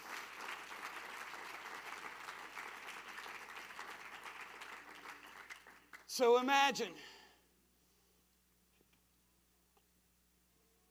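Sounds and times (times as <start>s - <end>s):
audience clapping hands: 0.0s - 6.5s
speech: 6.2s - 7.2s.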